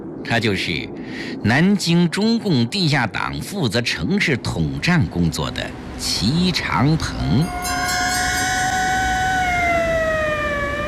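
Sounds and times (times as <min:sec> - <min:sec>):
speech: 0:00.2 - 0:08.0
traffic rumble: 0:04.4 - 0:10.8
police car sirens approaching and passing: 0:07.1 - 0:10.8.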